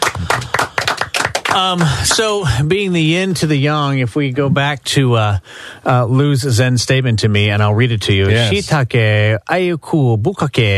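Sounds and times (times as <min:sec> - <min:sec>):
hand clapping: 0:00.0 - 0:02.4
speech: 0:01.6 - 0:10.7.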